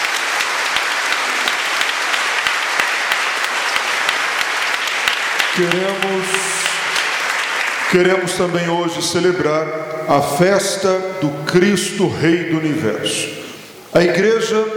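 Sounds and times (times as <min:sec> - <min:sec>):
audience applause: 0:00.0 - 0:09.2
speech: 0:05.6 - 0:06.5, 0:07.9 - 0:14.7.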